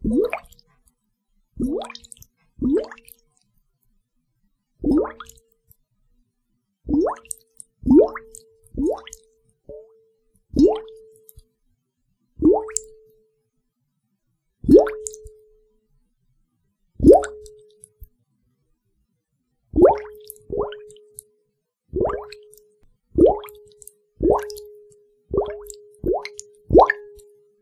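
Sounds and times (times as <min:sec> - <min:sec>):
chain of bubbles: 0:00.0 - 0:00.6, 0:01.6 - 0:03.2, 0:04.8 - 0:05.4, 0:06.9 - 0:09.9, 0:10.6 - 0:10.9, 0:12.4 - 0:12.9, 0:14.6 - 0:15.3, 0:17.0 - 0:17.6, 0:19.8 - 0:21.3, 0:21.9 - 0:27.3.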